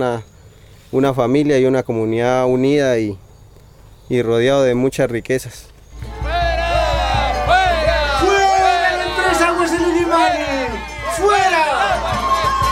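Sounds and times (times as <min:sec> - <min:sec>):
speech: 0:00.0 - 0:00.3, 0:00.9 - 0:03.2, 0:04.1 - 0:05.7
large crowd shouting and chanting in protest: 0:05.9 - 0:12.7.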